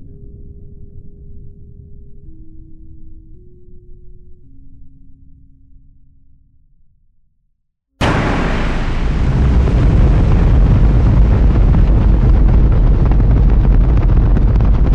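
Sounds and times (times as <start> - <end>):
cannon: 8.0 - 14.9.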